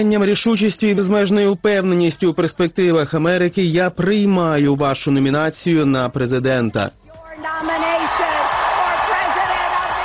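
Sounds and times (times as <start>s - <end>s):
speech: 0.0s - 7.6s
audience applause at political convention: 7.7s - 10.0s.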